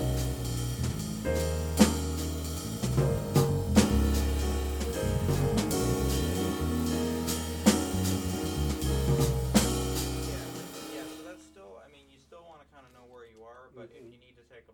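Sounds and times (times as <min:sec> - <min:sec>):
jazz bass solo: 0:00.0 - 0:11.6.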